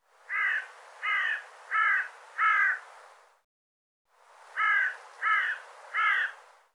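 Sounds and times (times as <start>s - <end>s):
bird giving harsh caws: 0.3s - 2.8s, 4.6s - 6.4s.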